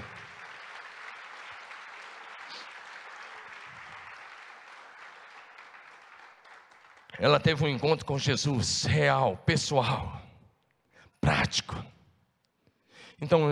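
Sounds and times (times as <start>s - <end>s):
audience applause: 0.0s - 7.6s
speech: 7.2s - 10.2s, 13.2s - 13.5s.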